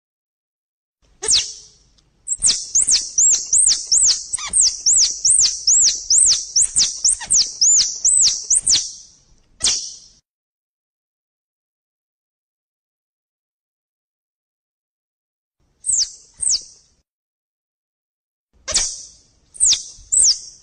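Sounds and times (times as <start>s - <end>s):
squirrel chattering: 1.2s - 1.7s, 2.3s - 9.0s.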